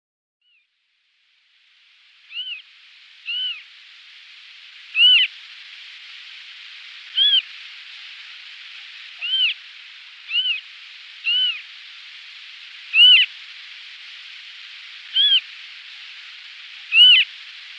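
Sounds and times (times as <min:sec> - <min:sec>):
background hiss: 0:00.5 - 0:17.7
Western marsh harrier whistled calls: 0:02.3 - 0:03.7, 0:04.9 - 0:05.3, 0:07.1 - 0:07.5, 0:09.0 - 0:09.6, 0:10.2 - 0:11.7, 0:12.9 - 0:13.4, 0:15.0 - 0:15.6, 0:16.7 - 0:17.7.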